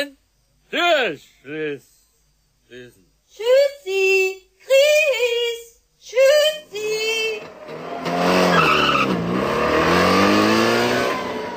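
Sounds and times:
speech: 0.0s - 1.9s, 2.7s - 9.0s
Trabant car engine roaring: 6.8s - 11.5s
Trabant skidding into gravel: 7.4s - 11.5s.

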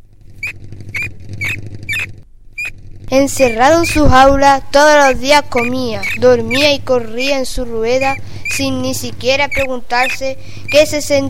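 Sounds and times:
hamster squeaking: 0.4s - 4.2s, 5.4s - 6.8s, 7.9s - 8.7s, 9.3s - 11.0s
speech: 3.1s - 11.2s.

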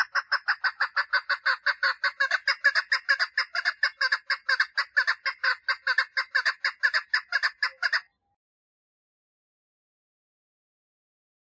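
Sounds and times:
partridge clucking: 0.0s - 8.2s.

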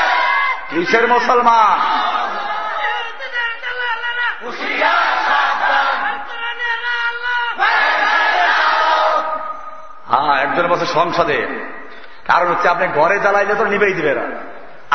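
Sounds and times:
large crowd of worshippers shouting in unison in response to a Friday sermon: 0.0s - 0.7s, 1.8s - 3.3s, 4.4s - 9.6s
speech: 0.7s - 2.0s, 10.5s - 14.9s.

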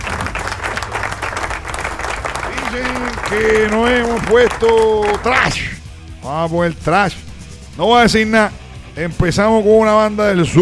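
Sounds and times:
applause: 0.0s - 5.5s
speech: 2.7s - 7.2s, 7.8s - 10.6s.

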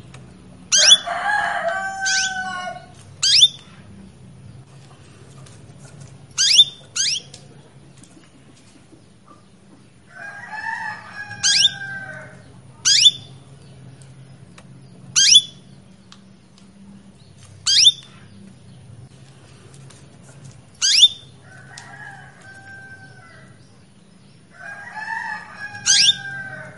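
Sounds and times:
female Belgian canary chirping to males: 0.6s - 4.7s, 6.3s - 7.5s, 10.2s - 16.6s, 17.2s - 18.9s, 20.8s - 26.7s.

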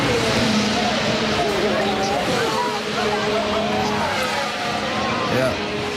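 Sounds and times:
faint voices: 0.0s - 5.9s
race cars speeding past: 0.0s - 5.9s.

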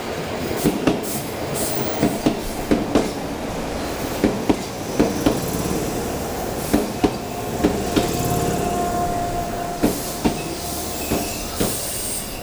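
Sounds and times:
older 8000 series electric train passing: 0.1s - 12.4s
train wheels clickety-clack over rail joints: 0.6s - 12.4s
faint high squeal: 7.2s - 12.4s.

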